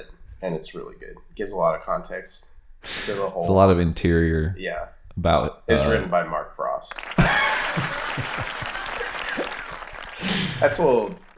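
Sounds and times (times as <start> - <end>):
speech: 0.0 - 8.7, 10.2 - 11.3
clapping: 6.9 - 11.3
laugh track: 7.0 - 11.0.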